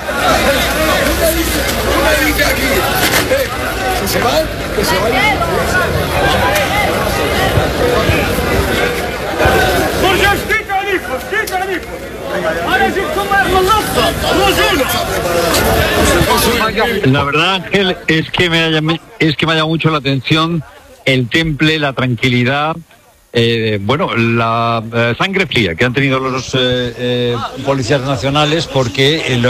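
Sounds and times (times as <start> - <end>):
crowd shouting during police clash: 0.0 - 18.1
speech: 4.1 - 6.6, 11.2 - 29.4.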